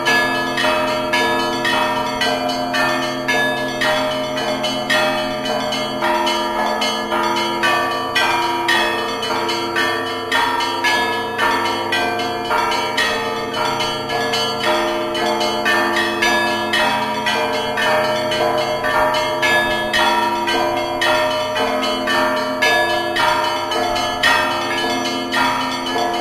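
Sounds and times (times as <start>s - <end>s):
Christmas bell ringing: 0.0s - 26.2s.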